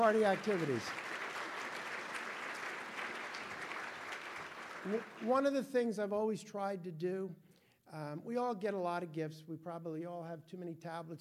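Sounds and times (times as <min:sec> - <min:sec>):
speech: 0:00.0 - 0:01.0, 0:04.8 - 0:11.1
audience applause: 0:00.0 - 0:05.4.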